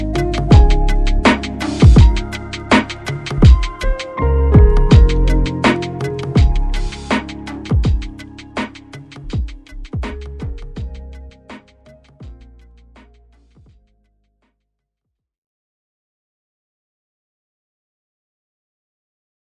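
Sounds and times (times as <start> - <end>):
lo-fi drum hit: 0.4 - 4.0, 4.6 - 11.0.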